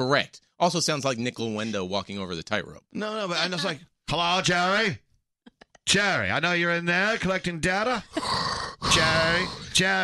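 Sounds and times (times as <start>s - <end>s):
speech: 0.0s - 5.0s, 5.8s - 10.0s
voice imitating heavy breathing: 8.0s - 9.8s.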